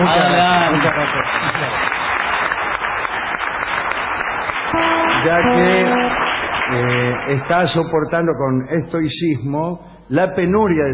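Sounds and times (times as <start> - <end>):
applause: 0.0 - 7.9
speech: 0.9 - 2.2, 4.7 - 10.9.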